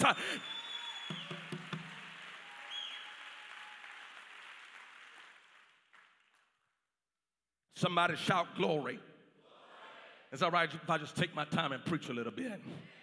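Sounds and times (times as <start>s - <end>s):
speech: 0.0s - 0.5s, 7.8s - 9.1s, 10.3s - 13.0s
audience clapping hands: 0.0s - 6.9s.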